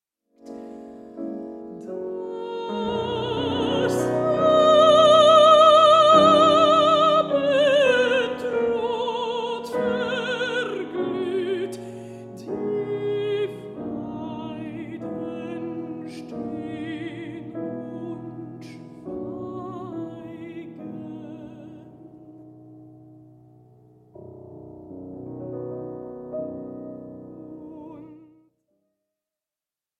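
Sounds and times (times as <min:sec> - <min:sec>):
piano: 0:00.3 - 0:28.6
mezzo-soprano singing songs: 0:01.2 - 0:22.5, 0:26.4 - 0:28.5.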